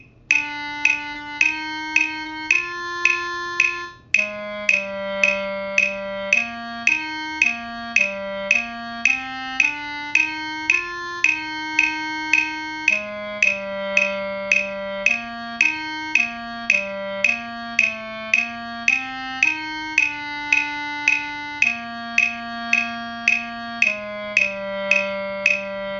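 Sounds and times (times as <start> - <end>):
clarinet: 0.3 - 25.9.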